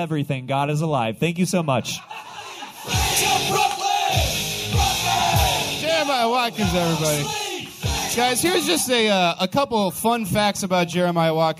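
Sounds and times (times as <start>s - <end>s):
speech: 0.0s - 3.8s, 6.2s - 7.4s, 8.2s - 11.5s
laughter: 1.7s - 4.1s
audience clapping and cheering: 2.2s - 8.8s.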